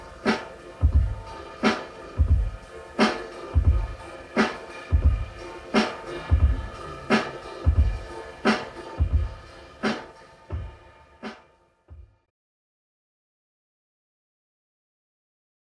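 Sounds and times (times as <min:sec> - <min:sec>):
instrumental music: 0:00.0 - 0:12.2.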